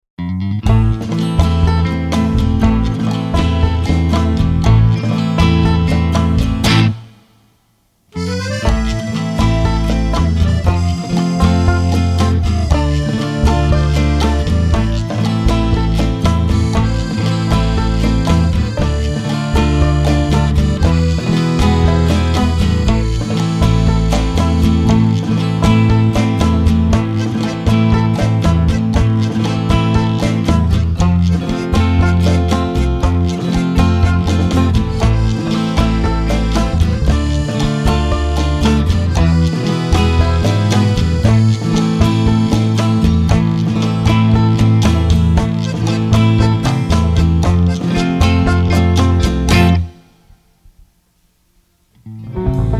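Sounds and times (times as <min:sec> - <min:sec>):
Western tango music: 0:00.2 - 0:07.2, 0:08.2 - 0:50.1, 0:52.1 - 0:52.7.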